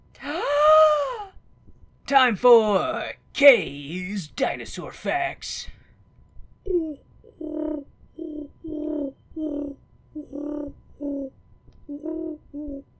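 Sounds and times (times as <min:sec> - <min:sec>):
speech: 0:02.1 - 0:05.8
person imitating pigeon cooing: 0:06.7 - 0:12.9.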